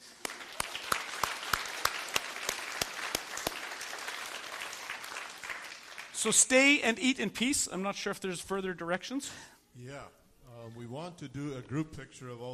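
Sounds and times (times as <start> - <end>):
audience applause: 0.0 - 6.5
speech: 6.2 - 12.5.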